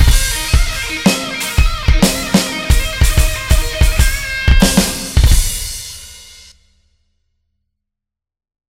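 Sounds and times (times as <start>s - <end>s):
smooth groove music: 0.0s - 6.1s.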